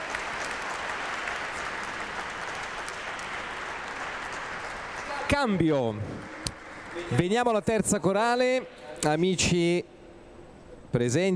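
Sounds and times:
audience applause for a choir: 0:00.0 - 0:07.2
speech: 0:05.3 - 0:06.4, 0:07.0 - 0:10.0, 0:10.9 - 0:11.3.

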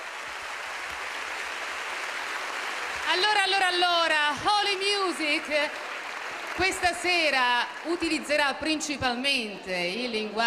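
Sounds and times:
audience applause: 0:00.0 - 0:09.0
speech: 0:03.2 - 0:05.9, 0:06.6 - 0:10.4.

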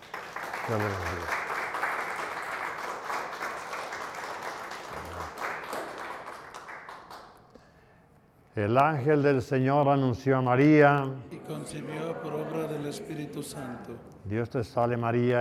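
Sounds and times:
audience applause: 0:00.0 - 0:07.4
speech: 0:00.7 - 0:01.4, 0:08.6 - 0:15.3.

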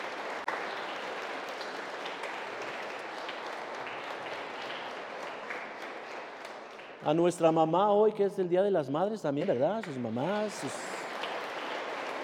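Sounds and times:
audience applause: 0:00.0 - 0:07.1, 0:09.9 - 0:12.2
speech: 0:07.0 - 0:10.9.

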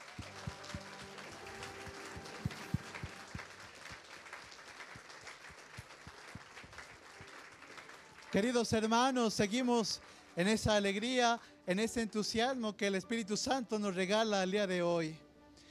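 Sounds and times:
audience applause: 0:00.0 - 0:09.6
speech: 0:08.3 - 0:15.2.

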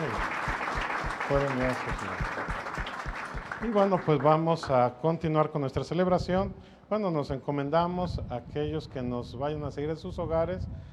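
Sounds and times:
congregation applauding seminarians at a Mass: 0:00.0 - 0:04.8
speech: 0:01.3 - 0:02.5, 0:03.6 - 0:10.9.

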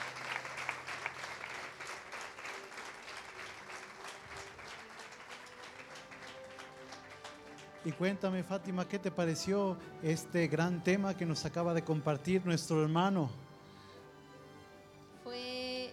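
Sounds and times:
audience applause: 0:00.0 - 0:09.1
speech: 0:07.8 - 0:13.4.

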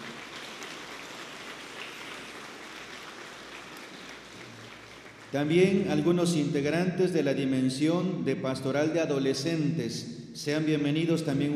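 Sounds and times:
audience applause: 0:00.0 - 0:05.6
speech: 0:05.3 - 0:11.5.

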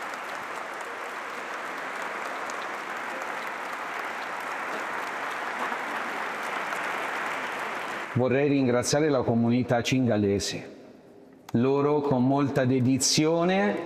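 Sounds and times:
audience applauding the band: 0:00.0 - 0:08.3
speech: 0:08.2 - 0:10.8, 0:11.5 - 0:13.8.

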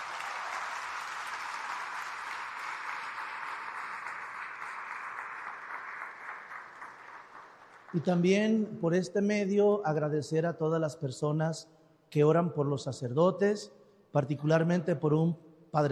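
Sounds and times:
crowd applause of gratitude: 0:00.0 - 0:08.2
speech: 0:07.9 - 0:15.9.

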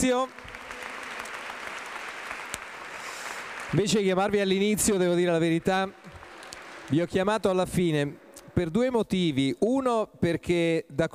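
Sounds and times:
speech: 0:00.0 - 0:00.5, 0:03.7 - 0:06.0, 0:06.9 - 0:11.1
audience applause at a festival event: 0:00.0 - 0:08.0.

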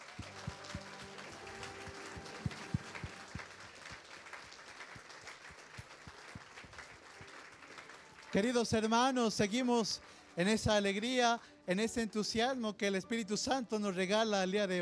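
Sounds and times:
applause: 0:00.0 - 0:11.1
speech: 0:08.4 - 0:14.8.

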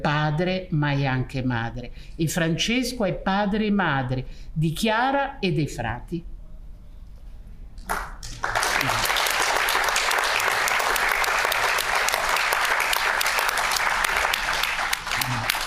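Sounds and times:
speech: 0:00.0 - 0:06.3, 0:07.8 - 0:09.2
spontaneous audience applause: 0:07.9 - 0:15.6.

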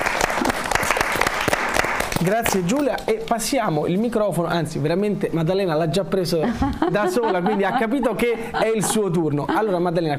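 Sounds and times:
audience applause at a poetry reading: 0:00.0 - 0:02.8
speech: 0:02.2 - 0:10.1
laughter: 0:06.2 - 0:10.1.

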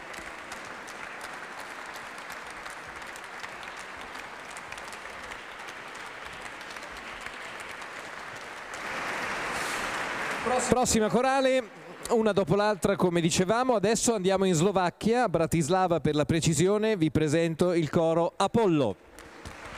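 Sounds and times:
audience applause for a choir from Lithuania: 0:00.0 - 0:12.3, 0:19.2 - 0:19.7
speech: 0:10.5 - 0:19.1.

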